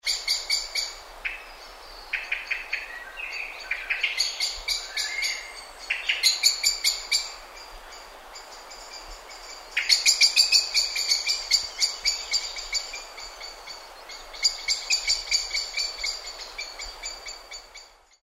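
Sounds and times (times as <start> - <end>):
blackbird singing: 0.0 - 17.9.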